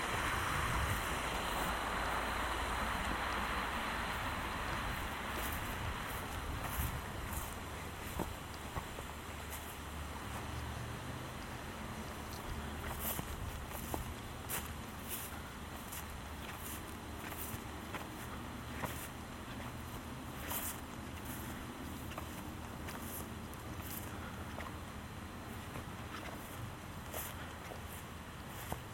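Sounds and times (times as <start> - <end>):
rushing noise with low rumble in Michaux State Forest: 0.0 - 27.2
crunching footsteps in Michaux State Forest: 4.1 - 10.8, 11.4 - 28.9.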